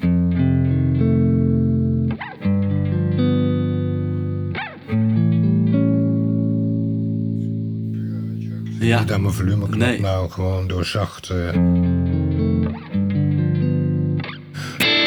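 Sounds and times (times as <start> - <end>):
heavily distorted high-gain electric guitar playing thick chords: 0.0 - 8.4, 11.6 - 15.0
speech: 8.9 - 12.0.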